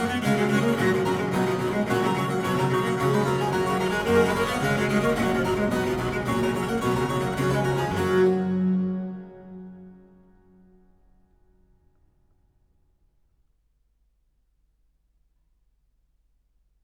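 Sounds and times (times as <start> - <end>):
classical trio presto in G major: 0.0 - 10.2.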